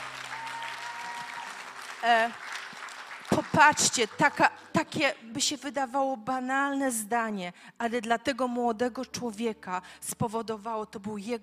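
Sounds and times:
audience applause: 0.0 - 4.7
speech: 2.0 - 2.6, 3.3 - 11.4.

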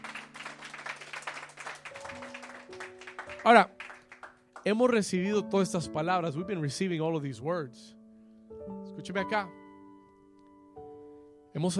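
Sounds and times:
church audience applause: 0.0 - 4.7
speech: 3.4 - 3.8, 4.6 - 8.0, 9.0 - 9.6, 11.6 - 11.7.

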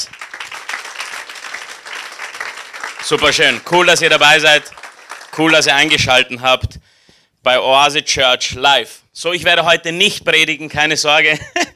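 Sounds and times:
audience applause: 0.0 - 6.0
speech: 3.1 - 4.8, 5.4 - 6.8, 7.4 - 11.6
laughter: 11.3 - 11.7.

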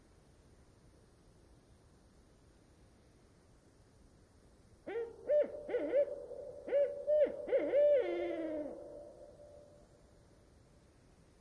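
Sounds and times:
barred owl hooting: 4.9 - 9.7.

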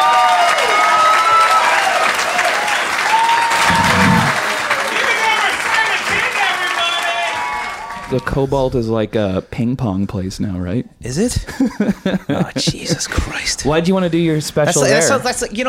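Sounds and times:
large audience applauding: 0.0 - 8.2
speech: 8.1 - 15.6
laughter: 11.4 - 13.2.

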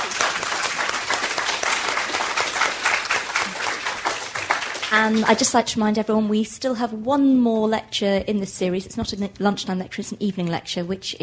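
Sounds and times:
audience applause: 0.0 - 5.4
speech: 4.9 - 11.2.

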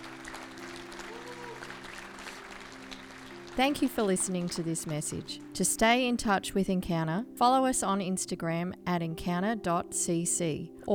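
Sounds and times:
applause: 0.0 - 6.0
speech: 3.6 - 10.9.

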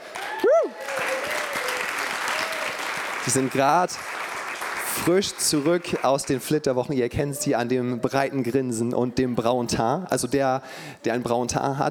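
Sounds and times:
audience applause: 0.0 - 6.5
speech: 3.2 - 4.2, 5.0 - 11.8.

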